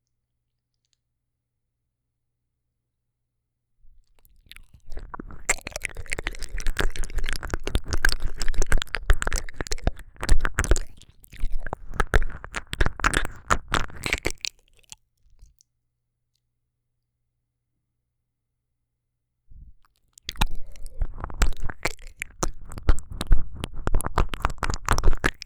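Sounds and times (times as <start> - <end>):
deep ear licking: 4.5 - 14.9, 20.3 - 25.4.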